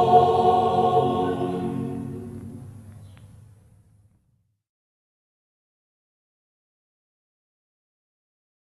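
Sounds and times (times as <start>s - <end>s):
chamber choir singing in Schäßburg local dialect: 0.0s - 2.8s.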